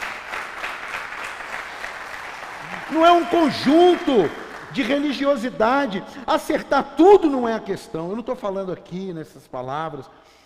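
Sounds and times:
audience clapping steadily: 0.0s - 6.0s
speech: 2.9s - 10.4s.

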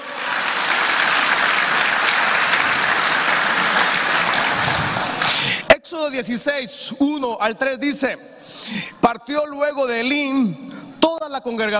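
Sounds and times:
audience applause: 0.0s - 5.5s
speech: 6.0s - 11.7s.

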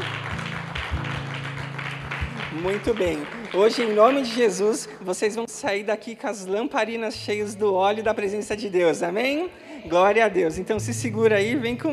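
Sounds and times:
audience applauding: 0.0s - 5.3s
speech: 2.6s - 11.9s.

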